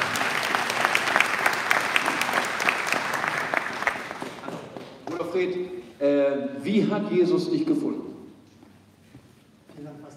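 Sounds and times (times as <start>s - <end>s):
audience applause: 0.0s - 5.0s
speech: 5.4s - 8.1s.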